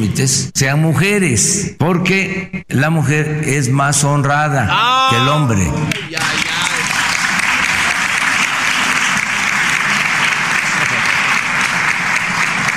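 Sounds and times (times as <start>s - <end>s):
speech: 0.0s - 6.5s
applause from a large crowd: 5.9s - 12.7s.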